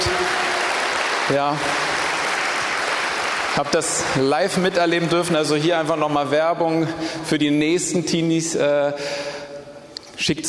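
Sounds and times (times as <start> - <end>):
audience applause: 0.0 - 4.8
speech: 1.3 - 1.8, 3.6 - 9.4, 10.2 - 10.4.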